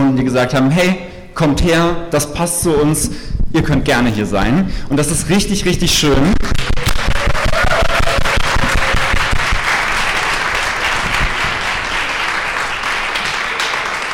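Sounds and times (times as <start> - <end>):
speech: 0.2 - 6.7
audience applause: 6.6 - 14.1.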